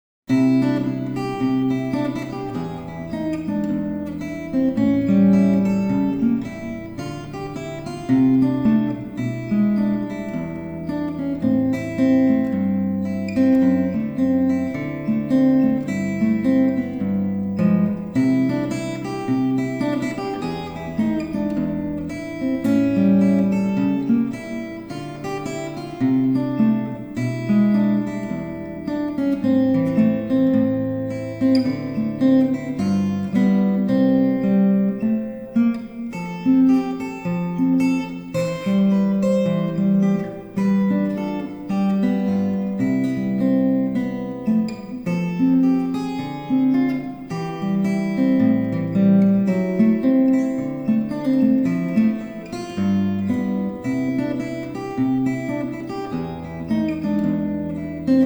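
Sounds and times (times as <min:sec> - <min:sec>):
blues music: 0:00.3 - 0:58.2.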